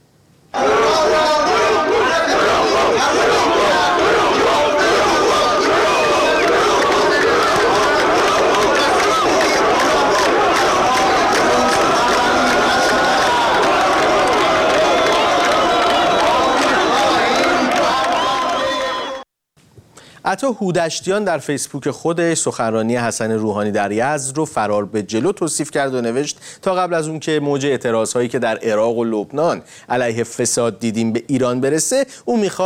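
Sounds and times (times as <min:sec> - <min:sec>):
large crowd chanting protest slogans at speech: 0:00.5 - 0:19.2
speech: 0:20.4 - 0:32.6.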